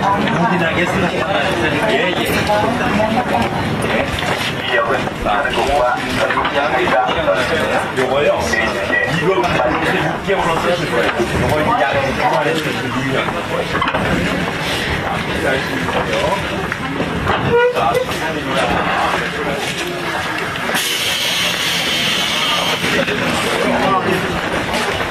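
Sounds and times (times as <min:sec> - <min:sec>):
Seoul subway Line 2 train running from Sincheon to Jamsil: 0:00.0 - 0:25.0.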